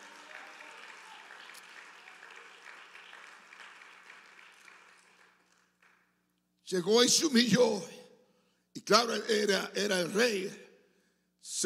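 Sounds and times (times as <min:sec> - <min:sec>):
audience applause: 0:00.0 - 0:06.1
speech: 0:06.7 - 0:08.0, 0:08.9 - 0:10.6, 0:11.4 - 0:11.6.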